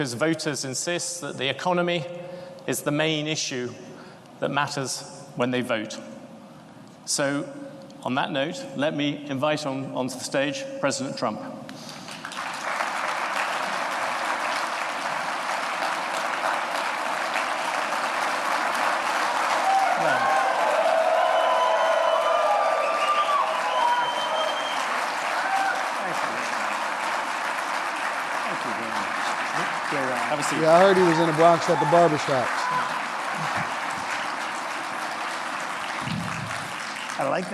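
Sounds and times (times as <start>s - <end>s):
speech: 0.0s - 6.1s, 7.1s - 11.9s, 30.7s - 32.9s, 37.2s - 37.5s
standing ovation applause: 12.0s - 37.5s.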